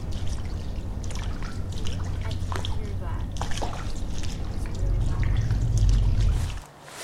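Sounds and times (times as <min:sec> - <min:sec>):
low rumble: 0:00.0 - 0:06.7
sloshing water as a sound effect for footsteps on water: 0:00.0 - 0:07.0.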